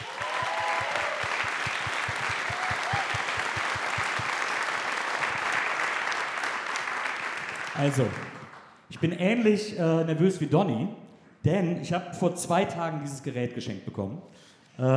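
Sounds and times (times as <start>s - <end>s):
audience applause: 0.0s - 8.8s
speech: 7.8s - 8.3s, 9.0s - 14.9s.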